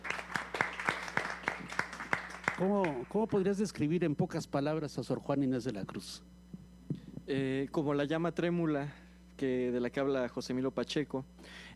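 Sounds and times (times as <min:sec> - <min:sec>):
sparse audience handclaps for a guest commentator: 0:00.0 - 0:03.5
speech: 0:02.6 - 0:06.3, 0:07.3 - 0:11.7.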